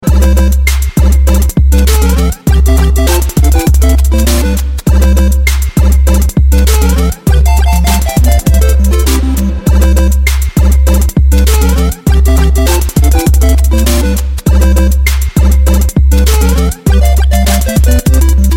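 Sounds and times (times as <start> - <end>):
trap ringtone: 0.0 - 18.5.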